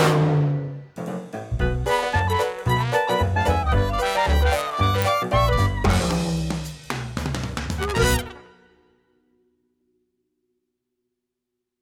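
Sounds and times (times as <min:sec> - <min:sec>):
jazz music: 0:00.0 - 0:08.8.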